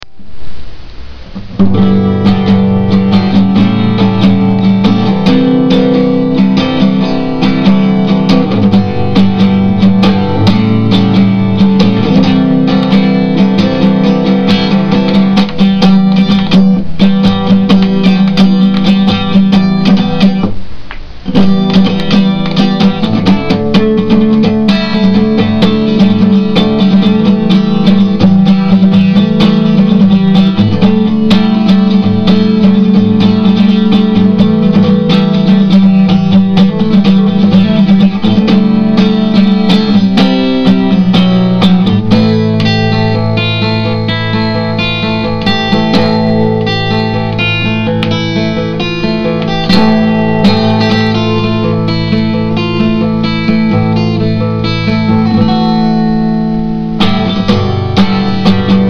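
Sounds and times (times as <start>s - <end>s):
acoustic guitar: 0.0s - 58.8s.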